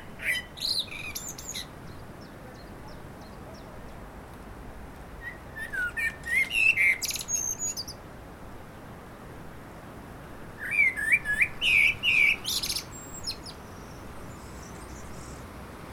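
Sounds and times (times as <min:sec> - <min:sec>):
common blackbird Turdus merula singing: 0:00.0 - 0:03.8, 0:05.2 - 0:08.0, 0:10.6 - 0:15.4.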